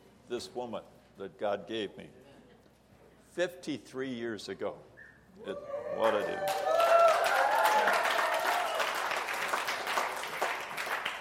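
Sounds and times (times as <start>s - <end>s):
speech: 0.3s - 2.3s, 3.4s - 6.7s
audience applause: 6.0s - 11.2s.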